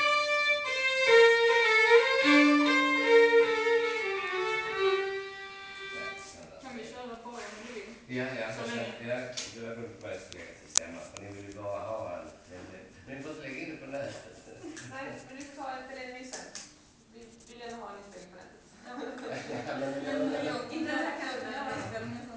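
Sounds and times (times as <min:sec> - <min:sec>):
waltz music: 0:00.0 - 0:06.3
laughter: 0:18.8 - 0:22.2.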